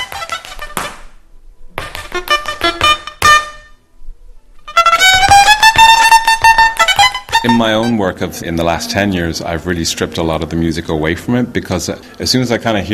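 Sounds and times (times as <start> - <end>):
Celtic fiddle playing: 0.0 - 1.2, 1.8 - 3.9, 4.5 - 9.5
speech: 2.2 - 2.4, 7.4 - 12.9.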